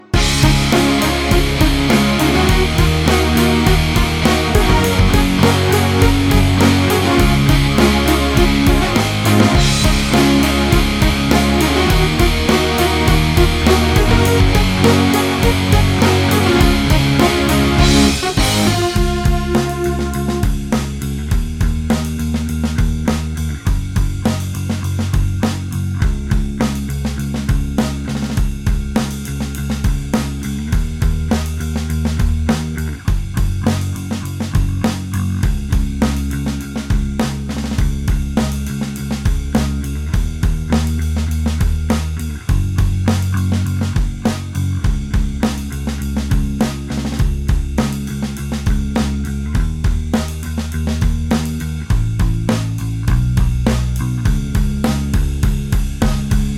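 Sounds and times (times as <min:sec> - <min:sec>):
bass: 0:00.0 - 0:56.5.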